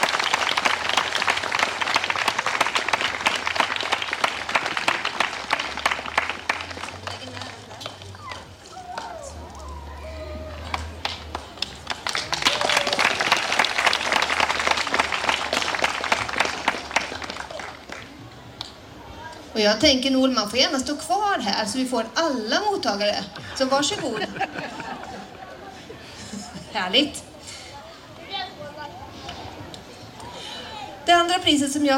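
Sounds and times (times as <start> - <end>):
sustained audience applause: 0.0 - 18.2
speech: 19.6 - 24.3, 26.8 - 27.2, 31.4 - 31.9
laughter: 23.2 - 26.7.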